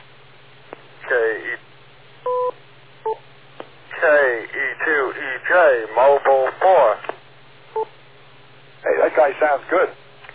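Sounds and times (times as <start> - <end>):
garbled band-limited radio voices: 1.0 - 1.6, 3.9 - 7.2, 8.8 - 9.9
speech: 9.4 - 10.0.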